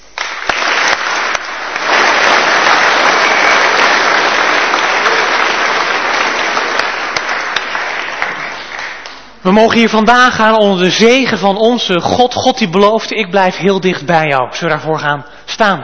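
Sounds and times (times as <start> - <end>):
audience applause: 0.0 - 9.4
speech: 9.4 - 15.8.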